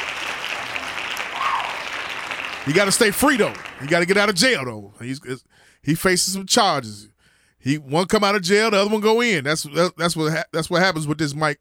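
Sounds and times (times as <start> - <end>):
group of people clapping: 0.0 - 4.5
speech: 2.6 - 11.5.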